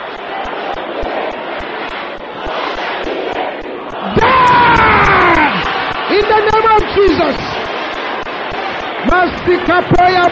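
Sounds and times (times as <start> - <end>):
large crowd shouting loudly: 0.0 - 10.2
loud sustained cry: 4.0 - 6.1
speech: 9.5 - 10.2.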